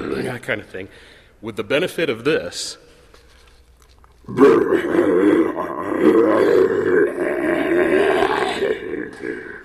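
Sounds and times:
speech: 0.3 - 2.9, 4.2 - 9.6
person imitating a bear with a deep rough growl: 4.3 - 9.6.

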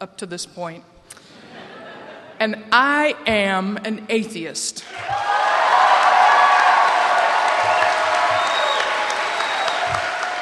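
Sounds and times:
speech: 0.0 - 1.2, 2.4 - 5.4
laughter: 1.3 - 2.4
large crowd applause: 4.9 - 10.3
whoops and whistles: 7.6 - 10.2.

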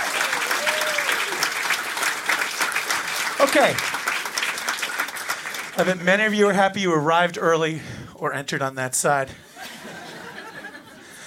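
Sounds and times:
audience applause: 0.0 - 6.3
speech: 3.4 - 3.9, 5.8 - 9.4
laughter: 9.4 - 11.2.

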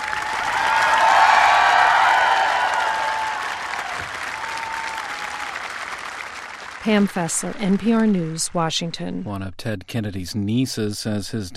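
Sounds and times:
large crowd applauding: 0.0 - 8.5
speech: 6.8 - 11.5.

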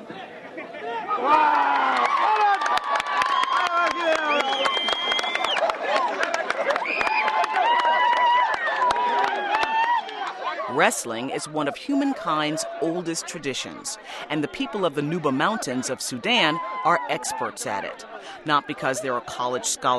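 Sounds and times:
crowd cheering at wrestling bout: 0.0 - 19.9
speech: 1.2 - 1.7, 10.8 - 19.9
sharp claps: 1.9 - 10.4.

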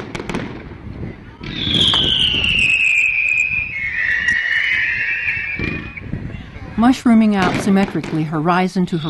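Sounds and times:
fireworks shells bursting with rumbling and crackle: 0.0 - 9.0
long loud high firework whistle falling in pitch: 1.4 - 6.2
speech: 6.8 - 9.0.

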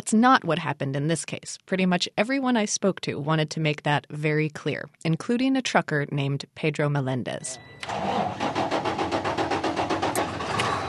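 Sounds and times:
speech: 0.1 - 8.6
shiny new big rig truck engine starting: 7.8 - 10.8.

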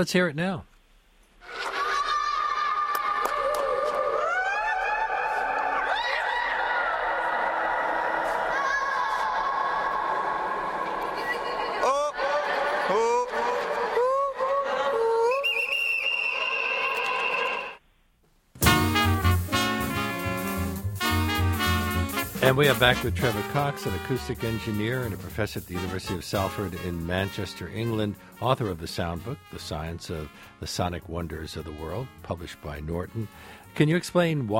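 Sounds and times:
speech: 0.0 - 0.7, 22.5 - 34.5
laughter: 1.4 - 7.4, 8.0 - 15.7, 22.4 - 27.2
crowd shrieking echoing in huge dome: 1.5 - 15.5, 16.2 - 17.8
music: 18.6 - 34.5.

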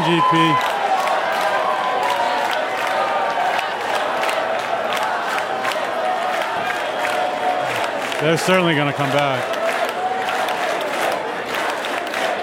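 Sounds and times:
concert crowd cheering and clapping: 0.0 - 12.4
speech: 0.1 - 0.7, 8.2 - 9.6.

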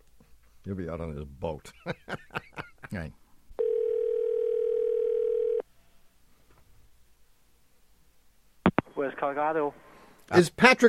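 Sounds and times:
speech: 0.6 - 3.2, 9.0 - 10.8
laughter: 1.7 - 3.1
telephone dial tone: 3.6 - 5.6.

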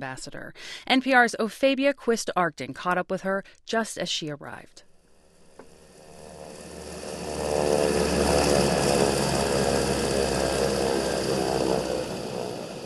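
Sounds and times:
speech: 0.0 - 4.9
aircraft landing at Dadaab: 5.2 - 12.8.

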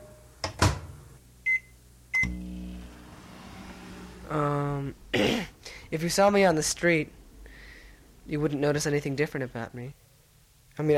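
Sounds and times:
microwave oven running: 0.0 - 5.3
speech: 4.3 - 7.2, 8.3 - 10.0, 10.8 - 10.9.

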